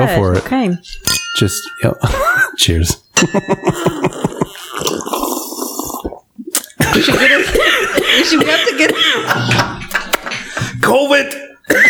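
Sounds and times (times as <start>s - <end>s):
speech: 0.0s - 5.2s, 6.9s - 9.9s, 10.9s - 11.8s
laughter: 2.0s - 4.8s, 6.8s - 10.8s
liquid being poured out: 4.6s - 7.8s.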